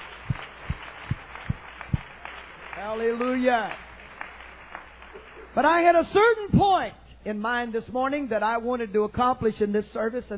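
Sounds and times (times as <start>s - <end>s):
audience hand clapping: 0.0s - 5.8s
speech: 2.8s - 3.8s, 5.6s - 10.3s.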